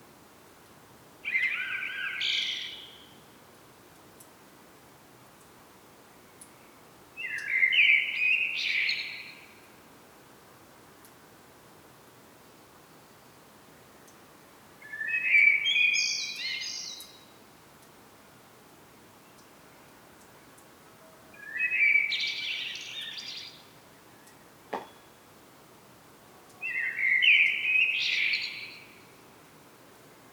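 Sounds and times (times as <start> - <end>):
Common blackbird singing: 1.3 - 3.0, 7.2 - 9.4, 14.8 - 17.2, 21.4 - 23.6, 26.5 - 29.0.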